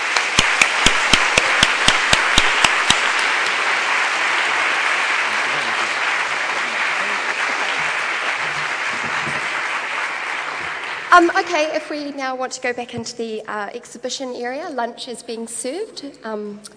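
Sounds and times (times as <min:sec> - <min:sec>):
audience applauding: 0:00.0 - 0:11.8
loud clapper beating a quick even rhythm: 0:00.0 - 0:12.1
speech: 0:11.2 - 0:16.7.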